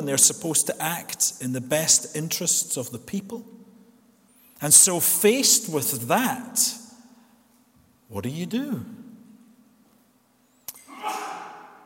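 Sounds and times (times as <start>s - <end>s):
speech: 0.0s - 3.6s, 4.6s - 6.8s, 8.1s - 9.0s
sneeze: 10.8s - 11.8s.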